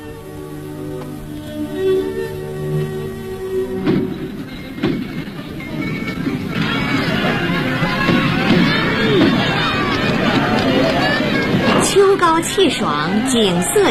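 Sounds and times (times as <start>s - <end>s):
crowd cheering at horse racecourse: 1.7s - 13.9s
people laughing at horse racecourse: 4.1s - 13.9s
speech: 12.6s - 13.9s.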